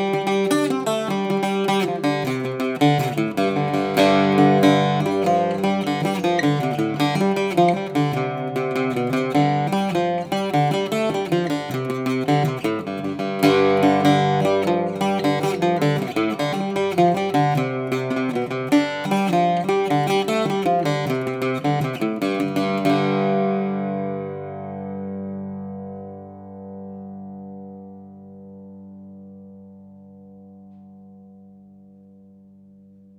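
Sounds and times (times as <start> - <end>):
cello: 0.0 - 23.7.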